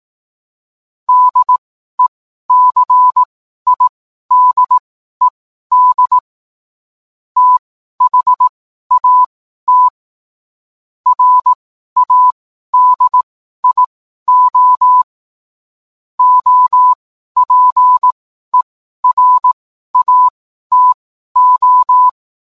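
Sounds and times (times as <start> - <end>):
morse code beeps: 1.1 - 6.2, 7.4 - 9.9, 11.1 - 15.1, 16.2 - 18.2, 19.0 - 22.2.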